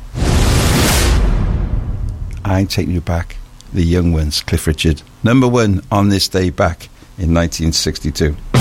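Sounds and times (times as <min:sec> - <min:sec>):
loud swoosh sound effect: 0:00.0 - 0:03.0
steady low rumble: 0:00.0 - 0:04.0
speech: 0:02.5 - 0:08.5.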